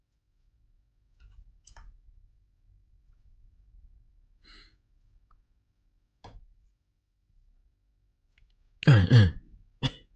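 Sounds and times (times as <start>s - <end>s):
harsh coughs: 8.8s - 10.1s
throat clearing: 8.8s - 10.1s.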